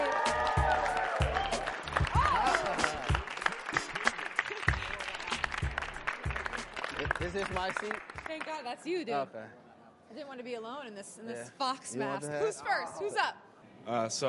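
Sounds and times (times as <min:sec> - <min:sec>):
audience applause and cheering welcoming an NFL player at a Halloween show: 0:00.0 - 0:08.5
speech: 0:07.2 - 0:14.2.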